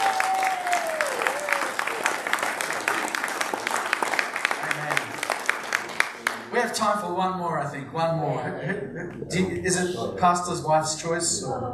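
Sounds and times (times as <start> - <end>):
church congregation clapping: 0.0 - 6.6
speech: 6.6 - 11.7
laughter: 8.4 - 9.9.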